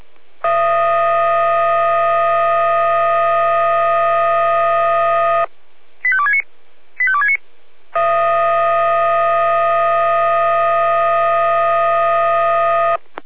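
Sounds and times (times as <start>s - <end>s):
electronic fire brigade alarm dispatch tones: 0.4s - 5.5s, 8.0s - 13.0s.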